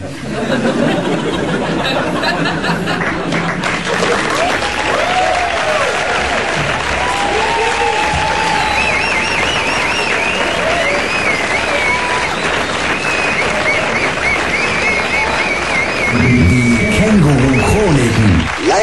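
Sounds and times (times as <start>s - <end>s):
laughter: 0.0s - 4.5s, 13.6s - 18.6s
audience clapping loudly: 2.6s - 18.8s.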